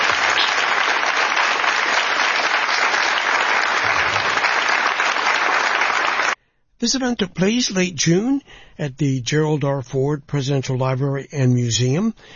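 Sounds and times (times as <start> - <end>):
audience applause: 0.0 - 6.4
speech: 6.8 - 12.3.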